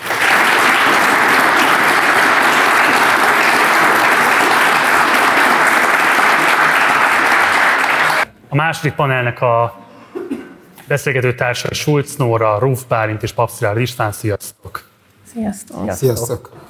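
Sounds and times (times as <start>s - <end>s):
audience applause: 0.0s - 8.3s
speech: 8.6s - 9.8s, 10.9s - 16.6s.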